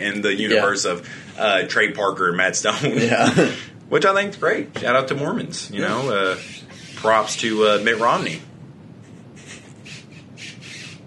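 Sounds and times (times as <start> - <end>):
speech: 0.0 - 8.5
low hum: 0.0 - 11.0
drink container squeaking: 5.8 - 8.4, 9.9 - 11.0.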